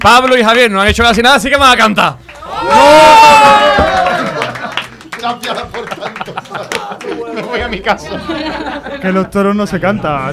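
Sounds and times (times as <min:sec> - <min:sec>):
speech: 0:00.0 - 0:04.1, 0:05.2 - 0:10.3
group applauding and cheering: 0:02.0 - 0:08.1
laughter: 0:04.0 - 0:09.5.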